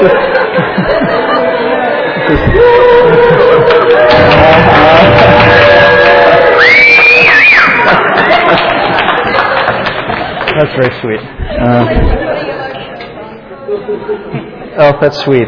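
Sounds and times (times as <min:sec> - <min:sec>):
laughter: 0:00.0 - 0:13.0, 0:13.6 - 0:14.6
busy crowd chatter: 0:00.0 - 0:15.4
audience cheering section cheering: 0:01.2 - 0:10.3
speech: 0:10.8 - 0:12.2, 0:13.9 - 0:15.4.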